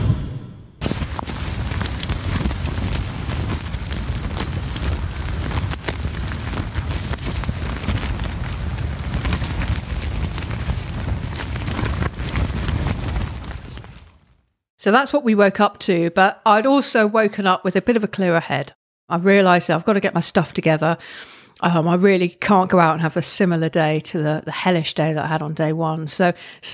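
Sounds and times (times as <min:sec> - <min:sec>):
strong wind buffeting tents at a campsite: 0:00.8 - 0:14.3
speech: 0:14.9 - 0:26.7.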